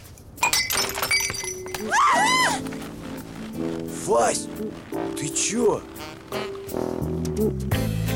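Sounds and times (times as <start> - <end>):
drinking glass smashing: 0.4 - 2.2
speech: 4.1 - 8.0.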